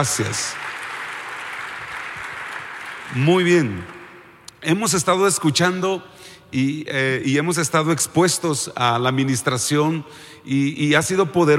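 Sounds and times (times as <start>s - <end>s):
speech: 0.0s - 0.7s, 3.1s - 4.0s, 4.6s - 11.5s
crowd clapping: 0.0s - 4.5s.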